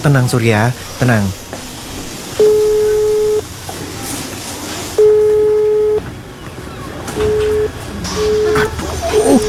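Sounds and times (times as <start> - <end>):
speech: 0.0 - 1.5
hissy noise: 0.0 - 9.4
mobile phone call tone not connecting: 2.4 - 3.5, 5.0 - 6.1, 7.2 - 9.4.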